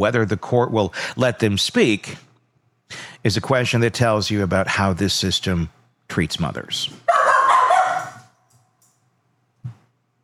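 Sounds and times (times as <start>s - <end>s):
speech: 0.0s - 2.3s, 2.9s - 7.1s
dog barking: 7.1s - 8.4s.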